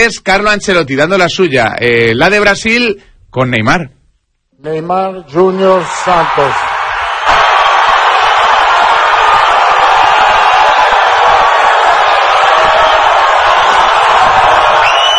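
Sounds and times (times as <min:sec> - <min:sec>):
speech: 0:00.0 - 0:04.0, 0:04.6 - 0:06.7
large stadium crowd applauding and cheering: 0:05.7 - 0:15.1.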